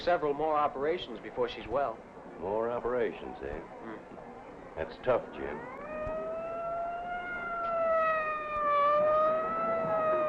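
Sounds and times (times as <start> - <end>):
speech: 0.0 - 5.8
fire engine siren wailing: 5.3 - 10.2.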